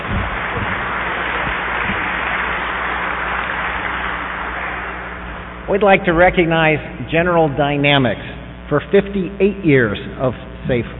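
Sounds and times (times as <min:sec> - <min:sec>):
audience applause: 0:00.0 - 0:06.3
speech: 0:05.7 - 0:10.9.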